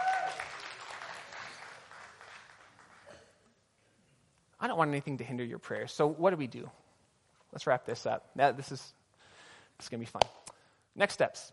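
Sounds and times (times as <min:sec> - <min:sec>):
audience clapping: 0:00.0 - 0:03.1
speech: 0:04.6 - 0:06.8, 0:07.6 - 0:09.0, 0:09.8 - 0:10.4, 0:11.0 - 0:11.5.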